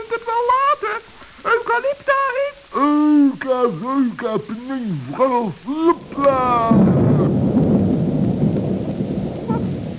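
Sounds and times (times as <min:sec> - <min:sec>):
speech: 0:01.7 - 0:06.9
thunderclap: 0:05.9 - 0:09.9.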